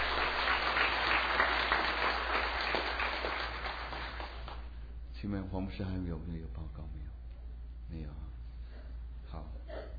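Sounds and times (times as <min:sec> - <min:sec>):
audience applause: 0:00.0 - 0:04.6
speech: 0:05.2 - 0:07.0, 0:07.9 - 0:08.3.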